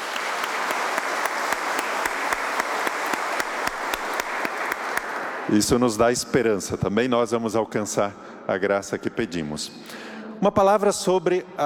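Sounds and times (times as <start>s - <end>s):
audience applause: 0.0s - 5.5s
speech: 5.5s - 11.6s.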